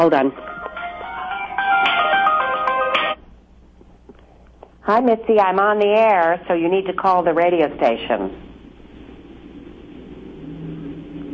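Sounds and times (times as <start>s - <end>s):
speech: 0.0s - 0.5s, 4.9s - 8.5s
cell phone ringtone electronic melody: 0.4s - 3.2s.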